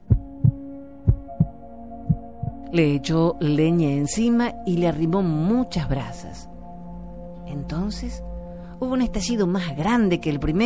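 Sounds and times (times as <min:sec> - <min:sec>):
giant's heart beating: 0:00.0 - 0:02.6
speech: 0:02.7 - 0:06.5, 0:07.5 - 0:10.6.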